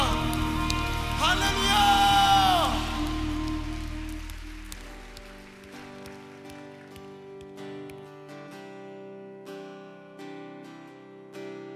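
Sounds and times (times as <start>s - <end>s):
audience applause: 0.0s - 8.2s.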